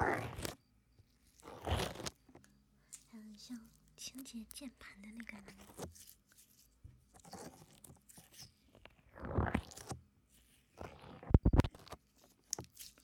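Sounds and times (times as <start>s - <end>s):
soft foam slime being squished and pressed: 0.0s - 13.0s
speech: 3.5s - 6.2s.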